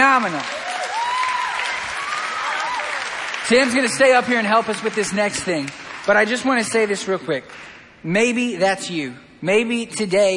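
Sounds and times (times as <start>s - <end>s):
audience round of applause: 0.0s - 6.5s
speech: 0.2s - 0.6s, 3.5s - 10.3s.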